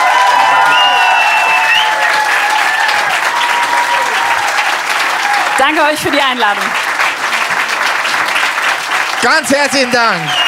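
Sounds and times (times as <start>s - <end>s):
audience applause: 0.0s - 10.4s
high whistles: 0.6s - 2.1s, 10.2s - 10.4s
speech: 5.6s - 6.9s, 9.2s - 10.4s.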